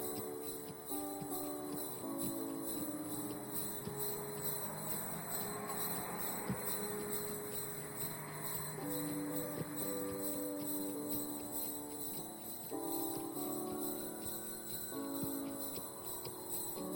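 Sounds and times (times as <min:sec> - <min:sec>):
carriage jingling bells: 0:00.0 - 0:16.9.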